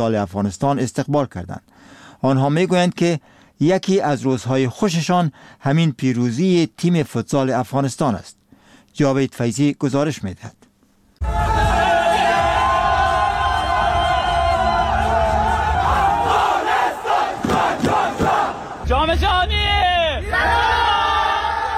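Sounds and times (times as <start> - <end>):
speech: 0.0 - 8.4, 9.0 - 10.6
crowd cheering and celebrating a football victory: 11.2 - 18.9, 19.7 - 21.7.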